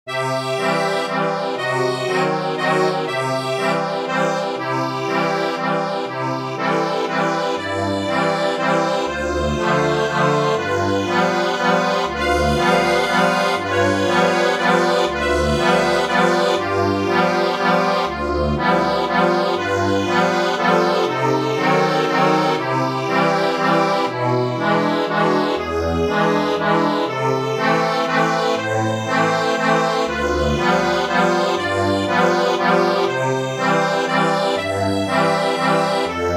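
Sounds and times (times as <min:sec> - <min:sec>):
accordion: 0:00.0 - 0:36.3.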